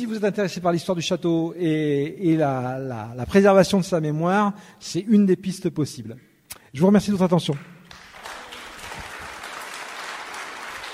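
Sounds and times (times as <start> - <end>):
speech: 0.0 - 7.7
audience applause: 7.9 - 10.9.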